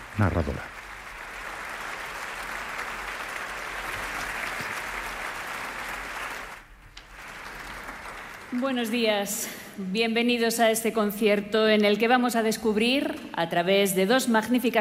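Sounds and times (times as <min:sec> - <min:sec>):
concert audience applause: 0:00.0 - 0:09.1
speech: 0:00.2 - 0:00.8, 0:08.6 - 0:14.7.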